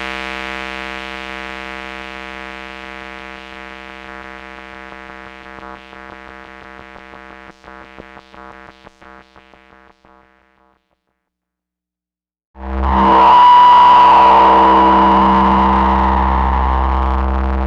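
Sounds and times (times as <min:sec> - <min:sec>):
Korg MS-20 synthesizer pads: 0:12.7 - 0:17.5.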